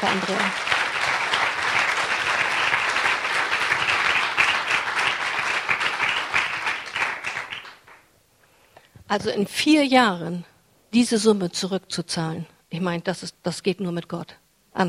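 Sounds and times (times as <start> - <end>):
speech: 0.0 - 0.7, 9.1 - 14.8
audience applause: 0.0 - 8.0.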